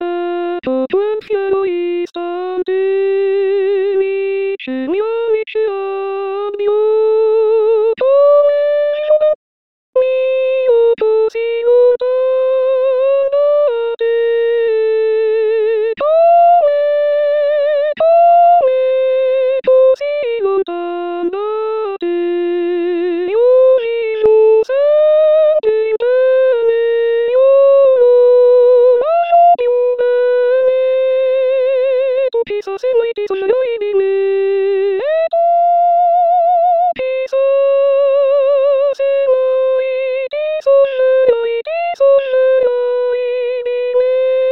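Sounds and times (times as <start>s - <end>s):
soprano singing: 0.0s - 9.4s, 10.0s - 44.5s.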